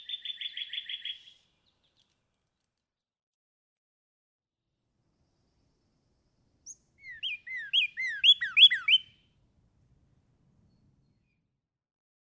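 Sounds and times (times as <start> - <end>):
Northern Cardinal singing: 0.0 - 1.4, 6.7 - 9.2.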